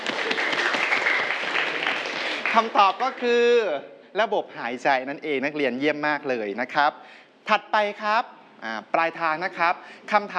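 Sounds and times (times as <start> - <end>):
students applauding a classmate in a class quiz: 0.0 - 3.3
speech: 2.6 - 10.3.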